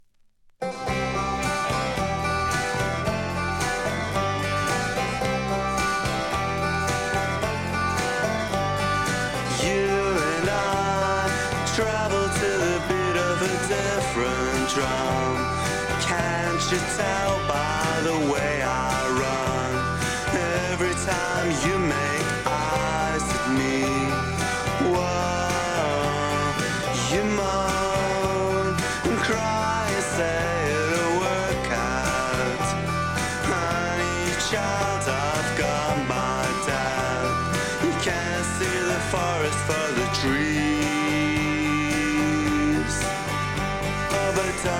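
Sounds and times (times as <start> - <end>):
drum: 0.6 - 44.7.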